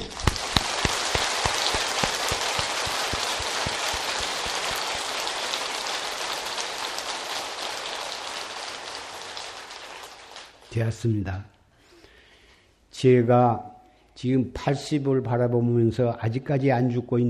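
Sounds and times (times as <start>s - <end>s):
crowd applause: 0.0s - 10.7s
speech: 10.8s - 11.6s, 13.0s - 17.2s.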